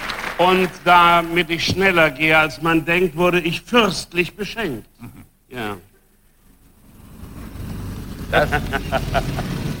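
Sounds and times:
speech: 0.4s - 5.8s, 8.3s - 9.5s
laughter: 5.0s - 5.4s, 8.3s - 9.7s
car driving past: 6.5s - 9.7s.

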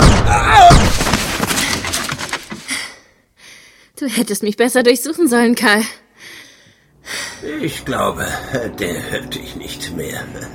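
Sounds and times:
gunshot: 0.0s - 1.5s
speech: 4.0s - 6.0s, 7.1s - 10.5s.

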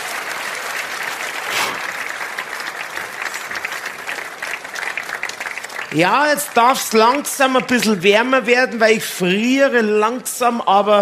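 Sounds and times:
audience applause: 0.0s - 8.3s
speech: 5.9s - 11.0s.

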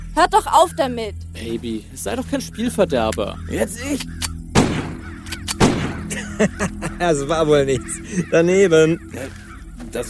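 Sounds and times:
speech: 0.2s - 4.3s, 6.4s - 10.0s
pistol shots: 4.5s - 6.1s
laughter: 6.0s - 9.4s.

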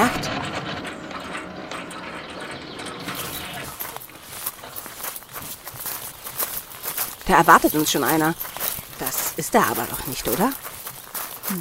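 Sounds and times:
gate to a grand house opening: 0.0s - 5.5s
speech: 7.3s - 8.6s, 9.5s - 10.7s.

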